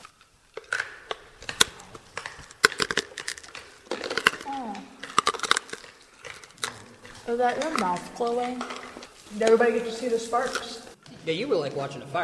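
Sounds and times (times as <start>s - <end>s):
crunching hard candy with mouth open: 0.0s - 11.0s
voiced murmur: 4.4s - 5.1s, 6.6s - 12.2s
speech: 7.3s - 12.2s.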